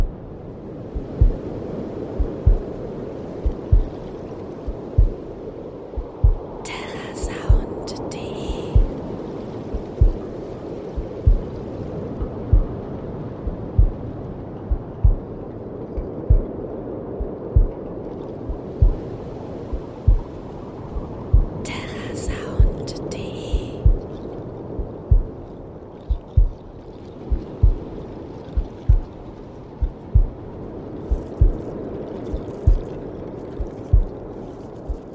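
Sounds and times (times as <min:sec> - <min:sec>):
heartbeat: 0:00.0 - 0:00.2, 0:00.9 - 0:01.5, 0:02.2 - 0:02.8, 0:03.4 - 0:05.2, 0:05.9 - 0:06.6, 0:07.2 - 0:09.0, 0:09.7 - 0:10.2, 0:10.9 - 0:11.6, 0:12.2 - 0:12.8, 0:13.4 - 0:15.4, 0:16.0 - 0:16.6, 0:17.2 - 0:17.8, 0:18.5 - 0:19.1, 0:19.7 - 0:20.4, 0:21.0 - 0:25.4, 0:26.1 - 0:26.7, 0:27.3 - 0:29.2, 0:29.8 - 0:30.5, 0:31.1 - 0:33.0, 0:33.6 - 0:34.2, 0:34.9 - 0:35.1
waves: 0:00.0 - 0:35.1.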